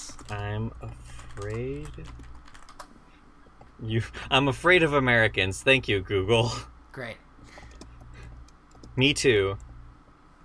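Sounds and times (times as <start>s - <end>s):
typing a Google search on a computer keyboard: 0.0s - 2.9s, 7.7s - 9.0s
speech: 0.3s - 2.4s, 3.8s - 7.6s, 9.0s - 9.7s.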